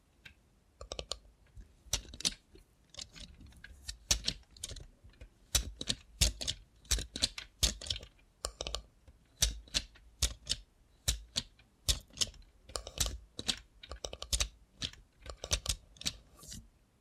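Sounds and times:
robot hand making sharp crisp clicks and taps: 0:00.3 - 0:01.2, 0:01.9 - 0:16.1.

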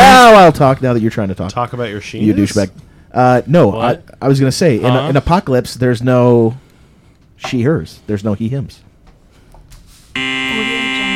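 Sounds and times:
speech: 0:00.5 - 0:06.6, 0:07.4 - 0:08.8, 0:10.2 - 0:10.8
game show buzzer: 0:10.2 - 0:11.1.

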